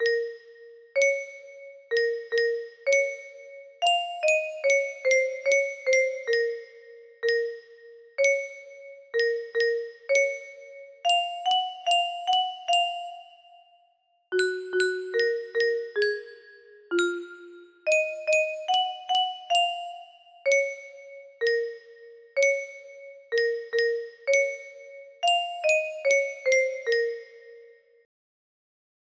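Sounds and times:
music box melody: 0.0s - 28.0s.

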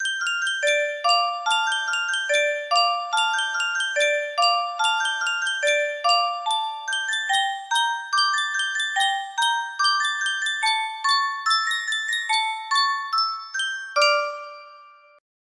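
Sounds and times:
Yunsheng music box melody: 0.0s - 15.2s.

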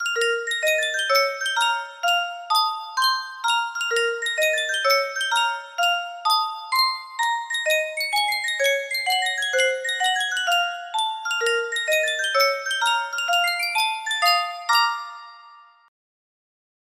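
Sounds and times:
Yunsheng music box melody: 0.0s - 15.9s.

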